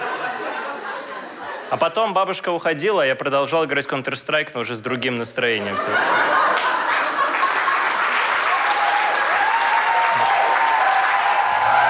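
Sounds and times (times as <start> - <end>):
laughter: 0.0 - 2.2, 5.5 - 8.5
speech: 1.7 - 6.4
audience applause: 6.3 - 11.8
faint whoops: 8.5 - 11.8.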